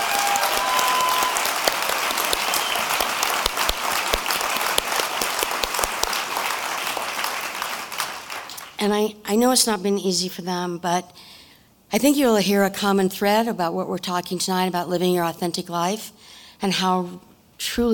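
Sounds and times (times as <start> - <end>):
audience applause for guests at an event: 0.0 - 8.8
speech: 8.8 - 11.3, 11.9 - 17.9.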